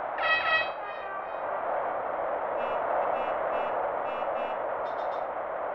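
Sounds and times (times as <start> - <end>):
in-game ambience: 0.2 - 5.6.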